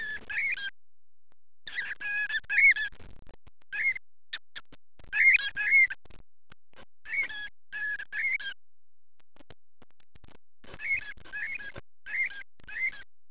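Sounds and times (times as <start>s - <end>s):
birds: 0.0s - 0.7s, 1.7s - 2.9s, 3.8s - 6.0s, 7.0s - 8.6s, 10.7s - 13.1s.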